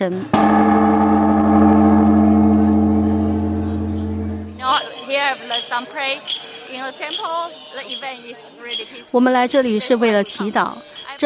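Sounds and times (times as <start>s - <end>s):
speech: 0.0s - 1.0s, 5.2s - 11.2s
temple bell struck with wooden pole for New Year at Zojoji in Tokyo: 0.4s - 4.8s.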